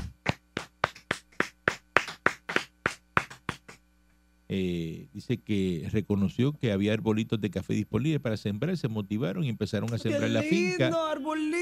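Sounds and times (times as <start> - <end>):
hand claps: 0.0 - 3.9
speech: 4.5 - 11.5.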